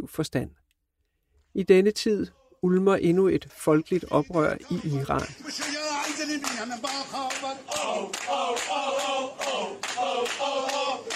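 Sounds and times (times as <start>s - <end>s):
speech: 0.0s - 0.6s, 1.6s - 11.1s
crowd chanting in a loud sustained singsong: 3.4s - 11.1s
hands clapping along in a steady regular beat: 4.8s - 11.1s.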